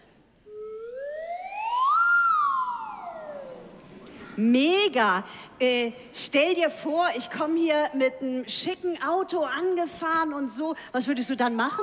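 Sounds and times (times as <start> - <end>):
lotus flute being played: 0.5 - 3.8
speech: 4.4 - 11.8.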